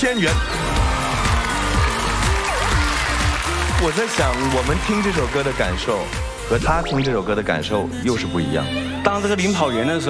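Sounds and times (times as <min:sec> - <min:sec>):
speech: 0:00.0 - 0:00.6, 0:03.8 - 0:10.0
audience applause at a televised singing show: 0:00.4 - 0:06.7.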